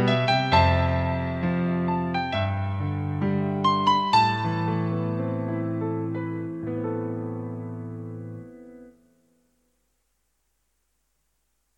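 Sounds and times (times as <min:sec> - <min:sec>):
piano: 0:00.0 - 0:09.8.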